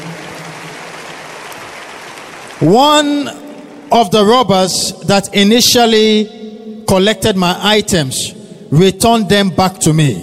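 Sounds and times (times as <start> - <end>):
audience clapping: 0.0 - 3.8
speech: 2.6 - 10.2.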